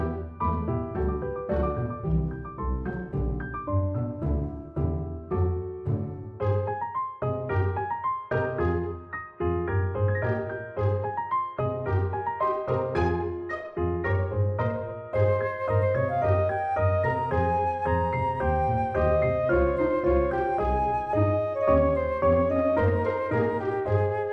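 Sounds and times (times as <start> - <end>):
happy tune: 0.0 - 9.3, 9.9 - 24.3.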